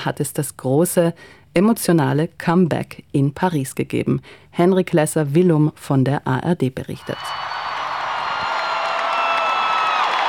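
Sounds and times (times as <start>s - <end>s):
speech: 0.0s - 7.6s
concert crowd cheering and applauding: 7.1s - 10.2s.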